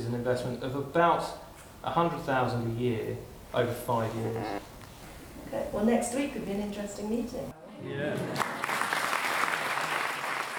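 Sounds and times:
speech: 0.1 - 4.7, 5.4 - 8.6
audience applauding: 8.4 - 10.5.

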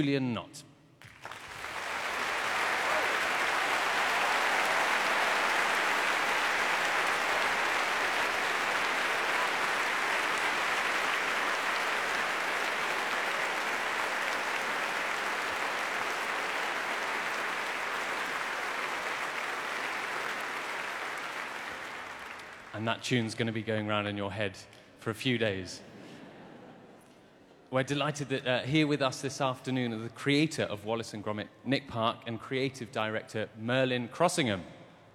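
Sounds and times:
speech: 0.0 - 0.7, 22.8 - 25.9, 27.7 - 34.8
audience applause: 1.0 - 22.8.

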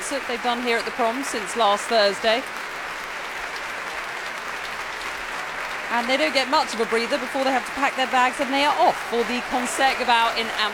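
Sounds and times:
large concert hall audience applause: 0.0 - 10.7
speech: 0.1 - 2.8, 6.0 - 10.7.

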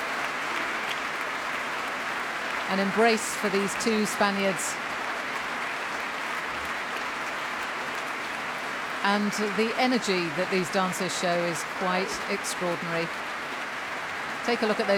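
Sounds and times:
audience applause: 0.0 - 14.9
speech: 2.7 - 4.9, 9.0 - 13.3, 14.4 - 14.9.

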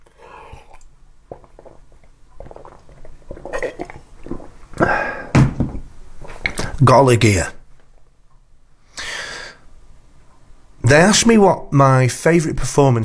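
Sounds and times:
person drinking a glass of water: 0.0 - 6.8
speech: 6.8 - 7.6, 10.9 - 13.0.

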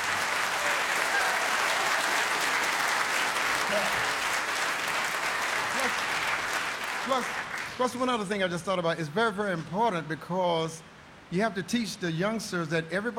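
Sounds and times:
audience applause: 0.0 - 8.0
speech: 7.1 - 13.1.

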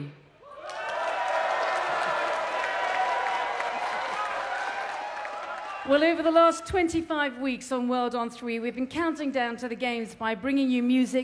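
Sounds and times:
festival crowd applauding and cheering: 0.4 - 6.1
speech: 5.9 - 11.2.

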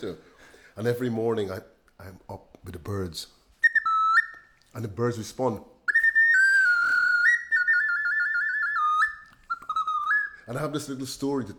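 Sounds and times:
speech: 0.0 - 3.4, 4.7 - 5.7, 10.5 - 11.5
clay ocarina being played: 3.6 - 4.6, 5.9 - 10.8.

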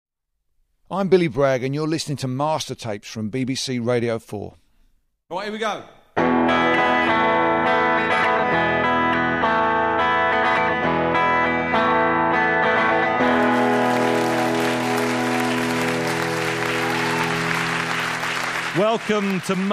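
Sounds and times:
speech: 0.9 - 4.6, 5.3 - 6.0, 18.8 - 19.7
live band playing at BBC Maida Vale Studios: 6.2 - 19.0
audience applause: 13.2 - 19.7.

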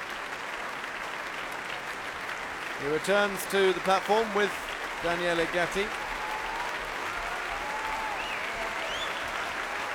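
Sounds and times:
concert hall audience applause: 0.0 - 9.9
speech: 2.8 - 6.0
faint audience whistles: 8.2 - 9.3.

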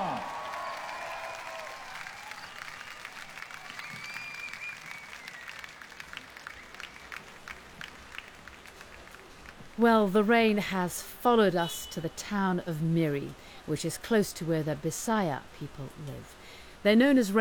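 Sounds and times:
whoops and whistles: 0.0 - 3.0, 3.7 - 5.8
audience applause for an orchestra: 0.0 - 9.8
speech: 9.8 - 17.3.

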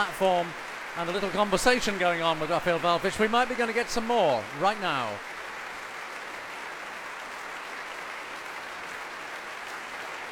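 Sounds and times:
speech: 0.0 - 5.3
audience applause: 0.0 - 10.2.

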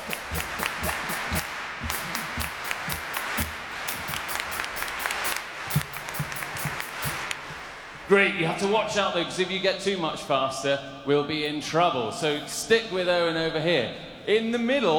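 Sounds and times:
large audience clapping a steady beat: 0.0 - 8.1
crowd noise: 0.0 - 9.6
speech: 8.1 - 14.9.

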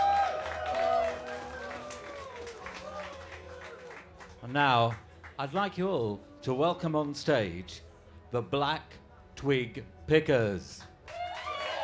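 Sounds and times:
festival audience applause: 0.0 - 5.0, 11.1 - 11.8
speech: 4.5 - 10.9.

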